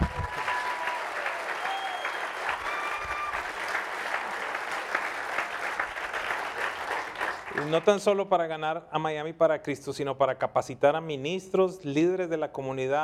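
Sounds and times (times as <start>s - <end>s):
audience applause: 0.0s - 8.0s
speech: 7.7s - 13.0s.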